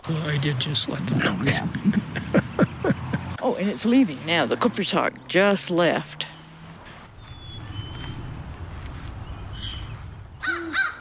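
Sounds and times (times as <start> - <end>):
speech: 0.0 - 2.7, 3.6 - 6.3
low outdoor rumble: 0.0 - 10.8
laughter: 1.1 - 3.4
crow cawing: 10.4 - 10.9.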